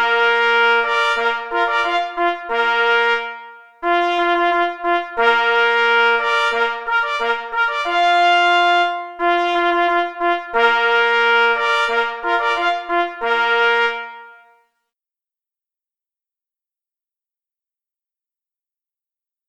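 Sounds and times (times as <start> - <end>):
march music: 0.0 - 14.6.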